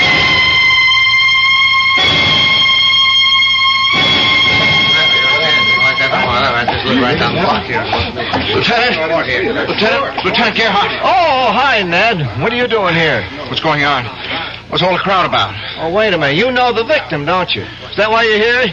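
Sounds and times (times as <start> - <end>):
police car sirens approaching: 0.0 - 8.7
laughter: 5.0 - 11.4
speech: 8.7 - 18.7.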